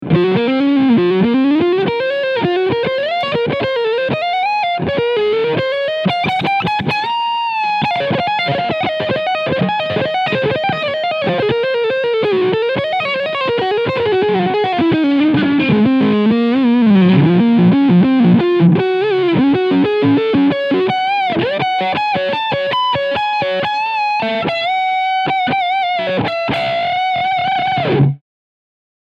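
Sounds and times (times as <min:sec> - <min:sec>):
lead electric guitar on neck pickup: 0:00.0 - 0:28.2.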